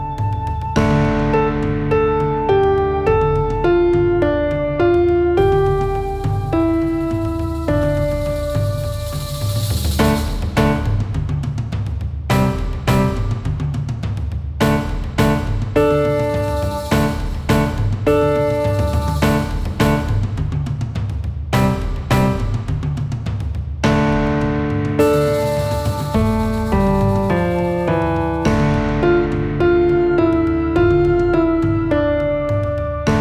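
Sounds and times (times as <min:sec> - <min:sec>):
slow forest drums: 0:00.0 - 0:33.1.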